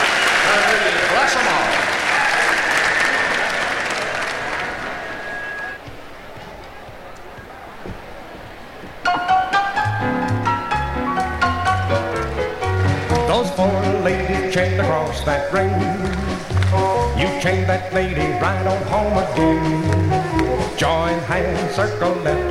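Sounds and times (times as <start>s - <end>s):
audience applause at a 1964 square dance jubilee in Houston, Texas: 0.0s - 5.8s
instrumental music: 9.0s - 22.4s
speech: 18.0s - 19.9s, 21.4s - 22.4s.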